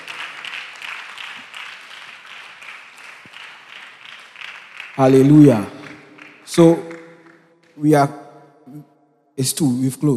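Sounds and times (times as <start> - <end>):
audience clapping: 0.0 - 7.9
speech: 5.0 - 5.8, 6.6 - 6.9, 7.8 - 10.1.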